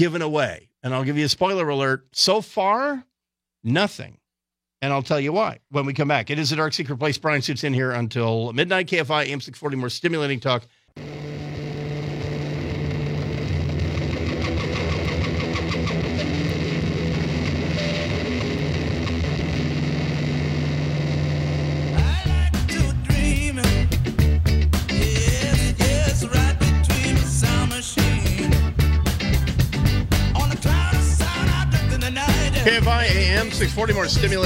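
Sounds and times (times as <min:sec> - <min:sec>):
speech: 0:00.0 - 0:04.2, 0:04.8 - 0:11.4, 0:33.8 - 0:34.4
distorted buzzing drone: 0:11.0 - 0:22.0
loud dense band with driving rhythm: 0:11.0 - 0:34.4.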